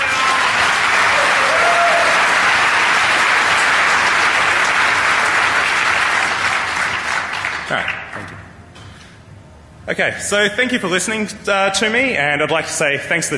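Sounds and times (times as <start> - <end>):
cheers and whistles: 0.0 - 2.5
crowd applause: 0.0 - 8.1
speech: 9.9 - 13.3.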